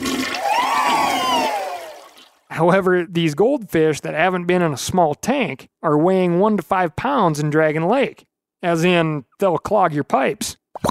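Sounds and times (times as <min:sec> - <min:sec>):
toilet flushing: 0:00.0 - 0:02.4
speech: 0:02.6 - 0:10.8.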